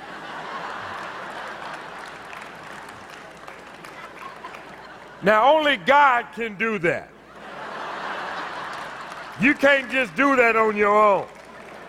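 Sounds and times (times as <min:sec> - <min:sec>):
laughter: 0:00.0 - 0:02.6, 0:03.6 - 0:06.2, 0:07.2 - 0:11.8
audience clapping on the beat: 0:00.5 - 0:04.8, 0:08.5 - 0:11.8
speech: 0:05.2 - 0:07.2, 0:09.4 - 0:11.4.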